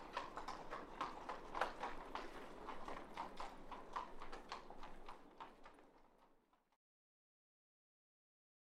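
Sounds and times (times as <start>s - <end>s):
single horse walking on cobbles: 0.0s - 6.8s.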